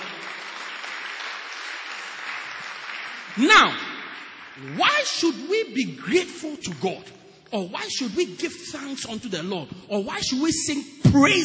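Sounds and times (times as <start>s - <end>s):
audience clapping hands: 0.0s - 5.6s
speech: 3.4s - 3.8s, 4.6s - 11.4s.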